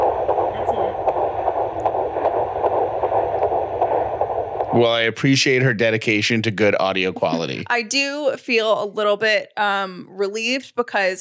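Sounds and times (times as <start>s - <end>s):
fetal heartbeat on ultrasound doppler: 0.0s - 4.8s
static hiss: 0.0s - 5.1s
laughter: 4.8s - 7.7s
speech: 4.8s - 11.2s.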